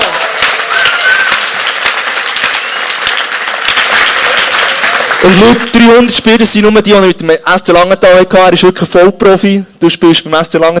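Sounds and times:
crowd applause: 0:00.0 - 0:06.1
speech: 0:05.2 - 0:10.7.

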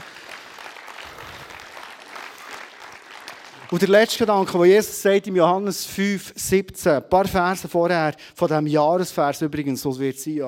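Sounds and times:
audience applause: 0:00.0 - 0:04.3
speech: 0:03.7 - 0:10.4.

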